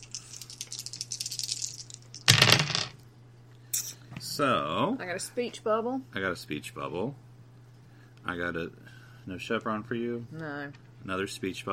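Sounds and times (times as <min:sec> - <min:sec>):
three dice being rolled: 0:00.1 - 0:03.0
speech: 0:04.4 - 0:07.2, 0:08.3 - 0:11.7.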